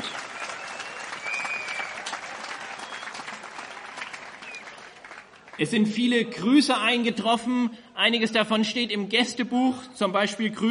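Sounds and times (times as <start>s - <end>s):
audience applause: 0.0s - 5.6s
speech: 5.6s - 10.6s.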